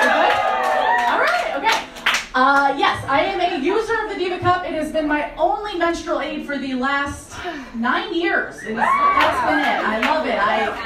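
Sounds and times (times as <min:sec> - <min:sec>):
voices and cheering: 0:00.0 - 0:02.0, 0:08.6 - 0:10.8
small audience clapping: 0:00.0 - 0:02.8, 0:09.1 - 0:10.8
speech: 0:02.4 - 0:10.8.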